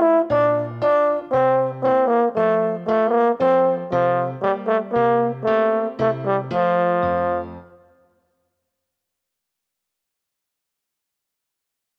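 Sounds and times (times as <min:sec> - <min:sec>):
French horn solo: 0:00.0 - 0:08.1.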